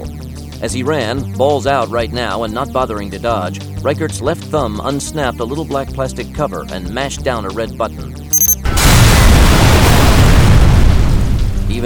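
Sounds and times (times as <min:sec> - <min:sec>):
speech: 0:00.6 - 0:08.2
shaped charge explosion: 0:08.7 - 0:11.7.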